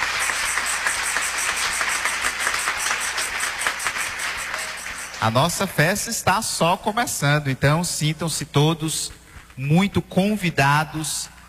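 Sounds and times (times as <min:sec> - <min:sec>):
audience applause: 0:00.0 - 0:05.8
speech: 0:05.2 - 0:11.3.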